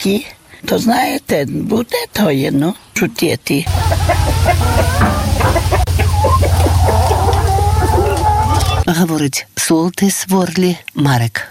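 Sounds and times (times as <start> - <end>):
speech: 0.0 - 5.0, 8.9 - 11.4
dense flock of chickens clucking and squawking: 3.7 - 8.8
steady low mechanical hum: 3.7 - 8.8.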